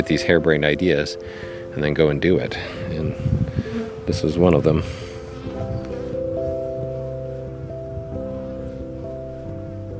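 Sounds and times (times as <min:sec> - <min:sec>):
speech: 0:00.0 - 0:03.4, 0:04.1 - 0:05.1
honeybee buzzing around the hive: 0:02.5 - 0:09.9.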